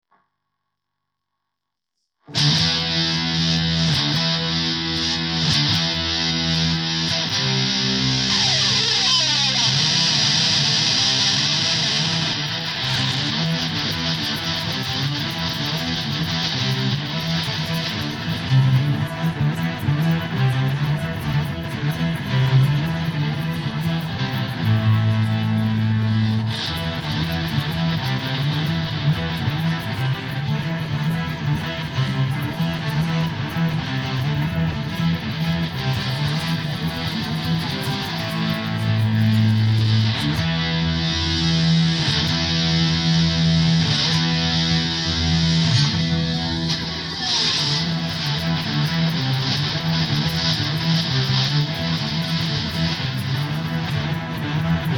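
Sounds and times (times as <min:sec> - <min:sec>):
guitar: 0:02.2 - 0:54.9.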